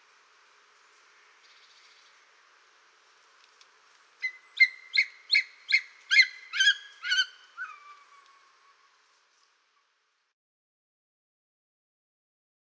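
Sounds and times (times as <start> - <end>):
greater spotted eagle giving short harsh harmonic yelps: 4.2 - 8.6.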